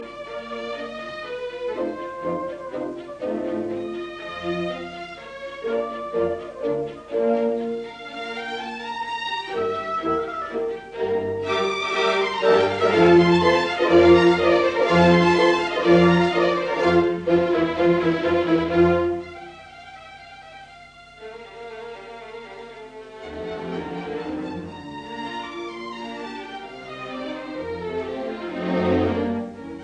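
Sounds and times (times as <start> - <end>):
piano concerto in B flat major, allegro: 0.0 - 29.8.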